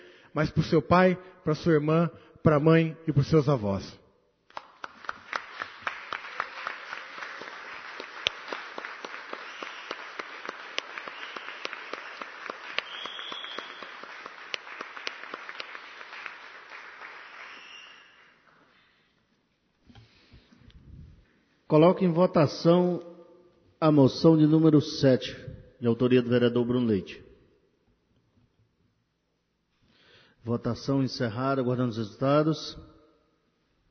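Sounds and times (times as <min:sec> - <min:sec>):
speech: 0:00.4 - 0:04.0, 0:21.7 - 0:23.1, 0:23.8 - 0:27.2, 0:30.4 - 0:32.9
audience applause: 0:04.6 - 0:18.3.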